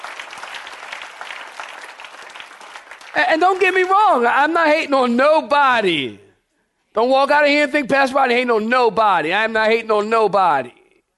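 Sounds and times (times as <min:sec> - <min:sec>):
audience clapping hands: 0:00.0 - 0:04.6
speech: 0:03.2 - 0:06.2, 0:07.0 - 0:10.8.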